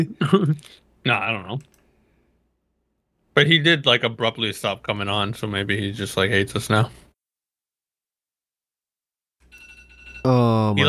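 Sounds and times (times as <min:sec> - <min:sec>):
speech: 0:00.0 - 0:01.8, 0:03.4 - 0:07.0, 0:10.2 - 0:10.8
phone alarm going off: 0:09.4 - 0:10.3.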